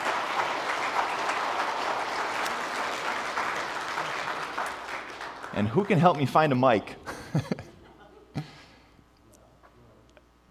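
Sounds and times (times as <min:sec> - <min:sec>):
audience applause: 0:00.0 - 0:06.7
speech: 0:05.6 - 0:07.6
laughter: 0:07.0 - 0:08.9.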